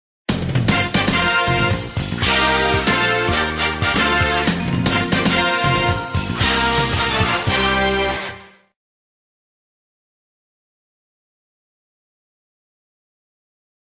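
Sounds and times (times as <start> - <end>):
game stage clear music: 0.3 - 8.7.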